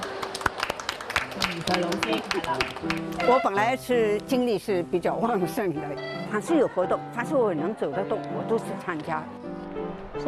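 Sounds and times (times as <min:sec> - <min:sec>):
audience applause: 0:00.0 - 0:03.6
speech: 0:01.6 - 0:10.2.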